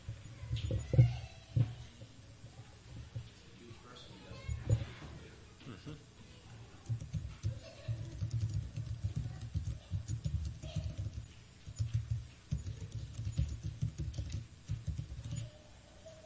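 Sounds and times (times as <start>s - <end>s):
low hum: 0.0s - 16.2s
typing on a computer keyboard: 6.8s - 15.5s.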